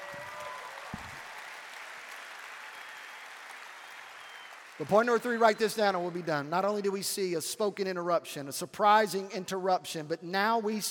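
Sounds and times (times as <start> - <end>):
audience clapping: 0.0 - 7.4
speech: 4.8 - 10.9.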